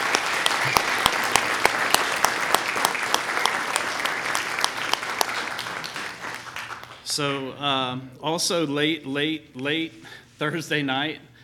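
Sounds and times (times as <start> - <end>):
audience applause: 0.0 - 7.2
speech: 7.2 - 11.3.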